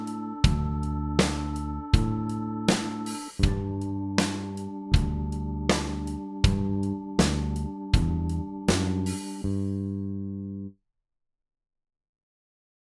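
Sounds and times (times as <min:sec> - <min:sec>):
backing track music: 0:00.0 - 0:10.0
major triad chord shapes: 0:00.0 - 0:10.7.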